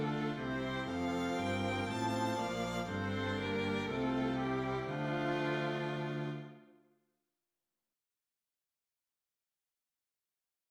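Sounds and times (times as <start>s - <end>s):
strings playing a hymn: 0.0s - 6.7s.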